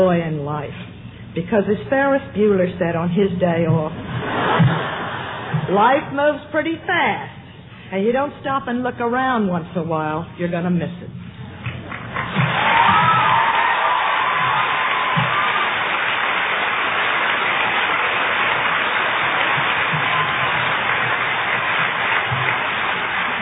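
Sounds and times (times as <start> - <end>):
speech: 0.0 - 4.8, 5.5 - 11.2
audience clapping and cheering: 11.6 - 23.4.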